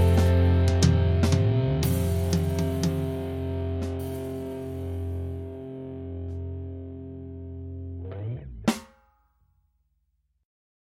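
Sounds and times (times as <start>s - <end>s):
4 4 rock drum beat: 0.0s - 5.6s, 8.6s - 9.0s.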